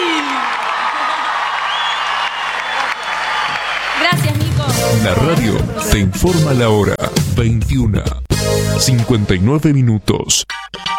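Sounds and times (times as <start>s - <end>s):
audience applause: 0.0s - 4.7s
speech: 5.0s - 8.2s, 8.8s - 10.8s.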